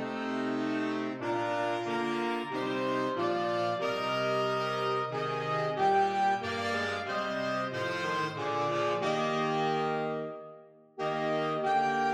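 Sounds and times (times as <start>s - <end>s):
saxophone quartet playing: 0.0s - 12.1s.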